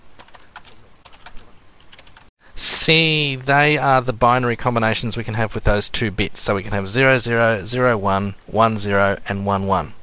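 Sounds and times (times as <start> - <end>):
keystrokes on a computer keyboard: 0.2 - 2.3
speech: 2.9 - 10.0.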